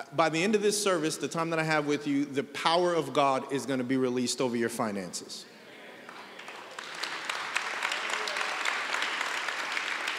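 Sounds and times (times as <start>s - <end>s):
speech: 0.0s - 5.6s
people clapping: 6.0s - 10.1s.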